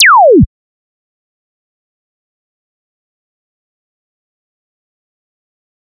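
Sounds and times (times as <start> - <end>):
impulse response: 0.0 - 0.5.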